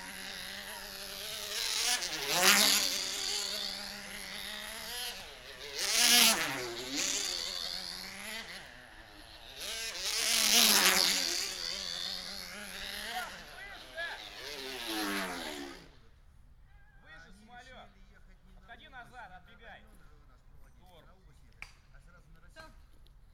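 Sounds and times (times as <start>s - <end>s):
control line model aircraft engine: 0.0s - 16.0s.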